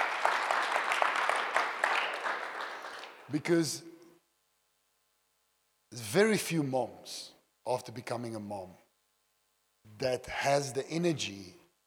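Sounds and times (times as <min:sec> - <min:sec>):
audience applause: 0:00.0 - 0:03.3
speech: 0:03.3 - 0:03.9, 0:06.0 - 0:08.8, 0:09.9 - 0:11.6.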